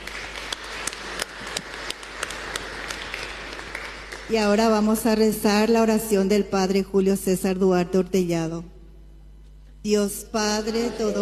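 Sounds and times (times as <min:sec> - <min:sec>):
audience applause: 0:00.0 - 0:04.3
speech: 0:04.3 - 0:08.7, 0:09.8 - 0:11.1.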